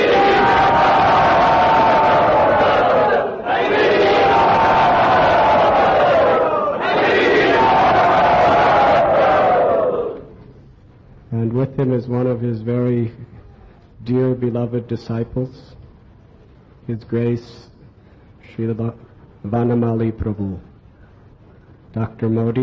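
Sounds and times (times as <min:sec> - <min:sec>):
crowd cheering and shouting to welcome a guest in a temple: 0:00.0 - 0:10.3
speech: 0:11.8 - 0:13.2, 0:14.0 - 0:15.8, 0:16.9 - 0:17.7, 0:18.5 - 0:20.7, 0:22.0 - 0:22.6.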